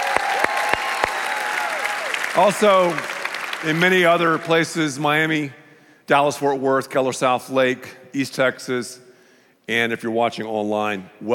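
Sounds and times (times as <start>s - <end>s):
audience applause: 0.0s - 4.6s
speech: 2.4s - 9.0s, 9.7s - 11.3s.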